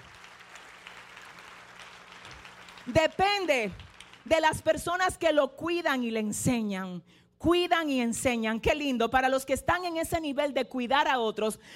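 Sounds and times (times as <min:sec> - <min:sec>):
audience applause: 0:00.0 - 0:04.4
speech: 0:02.9 - 0:11.7.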